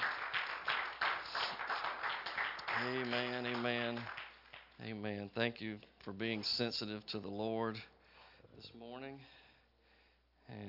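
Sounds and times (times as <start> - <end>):
church congregation giving a hand clap of praise: 0.0 - 4.8
speech: 2.8 - 4.2, 4.8 - 7.9, 8.6 - 9.4, 10.5 - 10.6.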